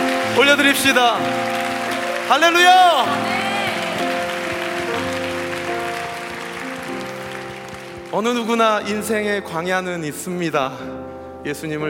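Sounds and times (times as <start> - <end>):
audience applauding: 0.0 - 9.2
speech: 0.4 - 1.6, 2.3 - 3.4, 8.1 - 11.8.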